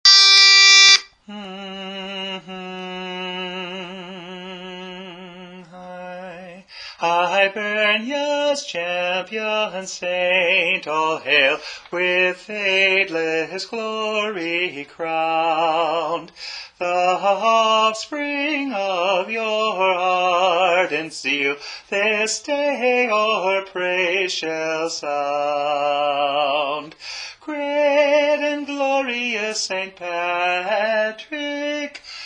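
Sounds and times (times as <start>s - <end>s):
tenor singing: 0.0s - 32.0s.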